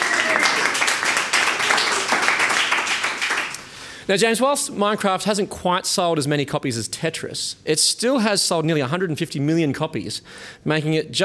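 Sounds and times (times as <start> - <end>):
round of applause: 0.0 - 3.7
speech: 4.1 - 11.2.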